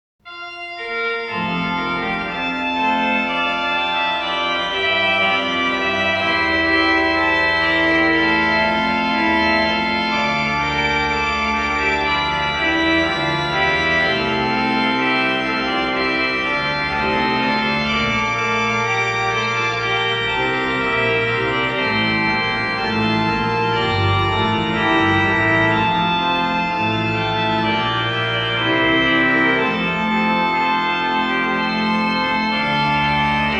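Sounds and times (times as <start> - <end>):
organ chorale prelude: 0.3 - 33.5.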